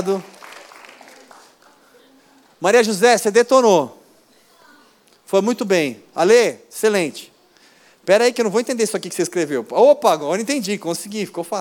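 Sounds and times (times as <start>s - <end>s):
speech: 0.0s - 0.4s, 2.6s - 4.0s, 5.3s - 7.3s, 8.0s - 11.6s
audience applause: 0.0s - 2.1s.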